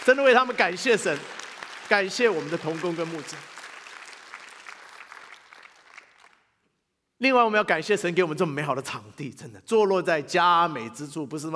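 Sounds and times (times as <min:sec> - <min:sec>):
speech: 0:00.0 - 0:03.5, 0:07.2 - 0:11.5
audience applause: 0:00.0 - 0:06.5.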